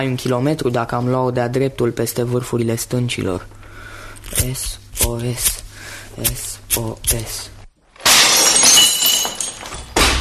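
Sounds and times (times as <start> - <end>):
speech: 0.0 - 3.6, 4.3 - 5.6, 6.2 - 7.5
window smashed and glass shattering: 8.0 - 10.1.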